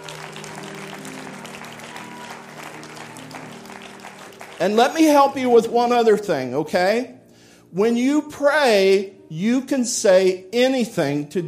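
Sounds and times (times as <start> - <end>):
audience hand clapping applause: 0.0 - 5.4
speech: 4.6 - 11.4.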